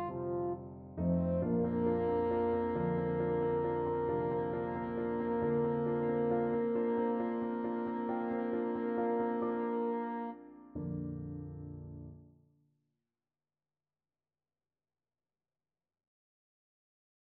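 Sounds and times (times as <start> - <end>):
French horn playing evensong: 0.0 - 10.4.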